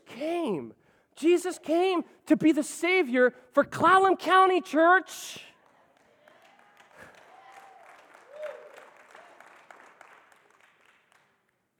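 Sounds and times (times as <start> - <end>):
speech: 0.2 - 5.5
crowd clapping hands: 5.6 - 11.7.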